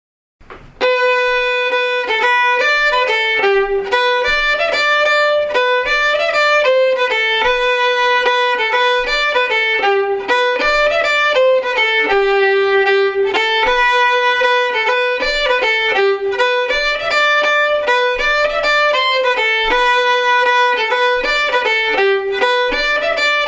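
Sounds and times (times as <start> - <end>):
slow old favorite tune: 0.4 - 23.4.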